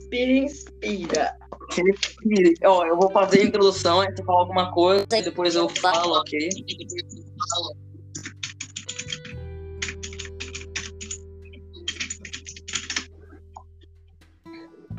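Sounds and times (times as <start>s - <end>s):
speech: 0.1s - 7.8s
typing on a computer keyboard: 8.2s - 11.2s, 11.8s - 13.1s.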